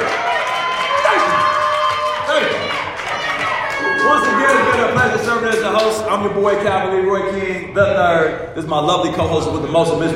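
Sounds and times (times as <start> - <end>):
audience round of applause and cheering: 0.0 - 6.0
speech: 5.9 - 10.1.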